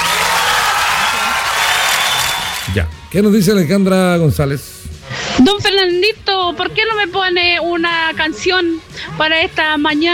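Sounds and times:
audience applauding: 0.0s - 2.9s
speech: 2.8s - 4.8s, 5.4s - 10.1s.

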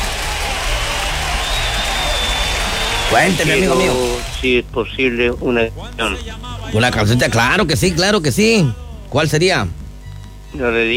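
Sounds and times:
applause: 0.0s - 4.4s
speech: 3.1s - 9.8s, 10.5s - 10.9s.

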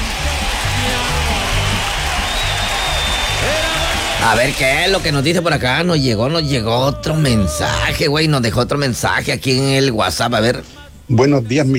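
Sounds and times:
applause: 0.0s - 5.0s
speech: 4.2s - 11.7s.

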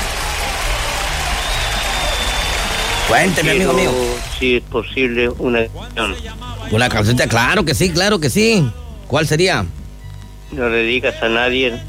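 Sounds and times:
applause for a radio show caller: 0.0s - 4.4s
speech: 3.1s - 9.8s, 10.5s - 11.8s.

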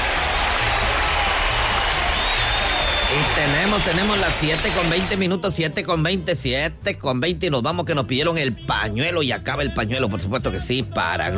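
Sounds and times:
applause: 0.0s - 5.2s
speech: 3.2s - 11.3s.

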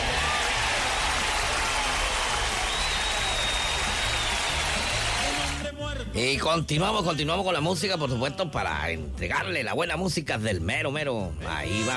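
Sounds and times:
applause: 0.0s - 5.7s
speech: 6.2s - 11.9s.

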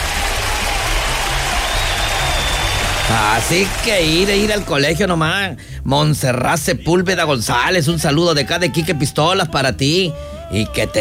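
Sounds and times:
applause: 0.0s - 4.9s
speech: 3.1s - 11.0s.

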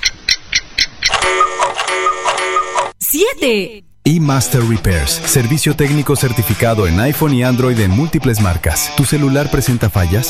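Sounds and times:
clock ticks: 0.0s - 2.9s
electronic time signal tone: 1.1s - 2.9s
speech: 3.1s - 10.2s.

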